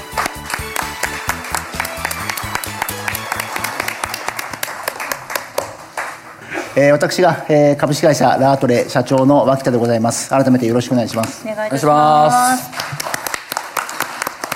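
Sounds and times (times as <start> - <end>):
audience applause welcoming a speaker: 0.0 - 6.3, 12.7 - 14.5
speech: 6.8 - 12.8.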